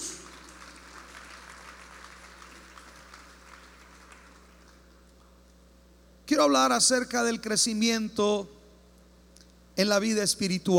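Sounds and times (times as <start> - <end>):
audience applause: 0.0 - 4.9
low constant hum: 0.0 - 10.7
speech: 6.4 - 8.6, 9.8 - 10.7.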